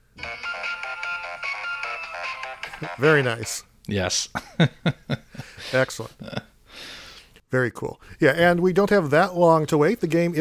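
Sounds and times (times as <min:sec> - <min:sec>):
phone ringtone playing a video game sound: 0:00.2 - 0:03.4
speech: 0:02.8 - 0:10.3.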